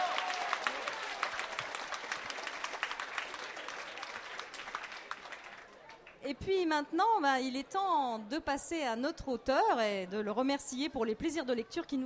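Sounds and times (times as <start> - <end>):
audience applause as an ovation for teachers: 0.0 - 6.2
speech: 6.3 - 12.0.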